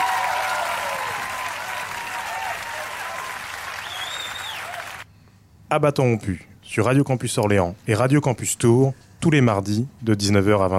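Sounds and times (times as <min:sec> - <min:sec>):
audience applause: 0:00.0 - 0:05.0
speech: 0:05.7 - 0:10.7.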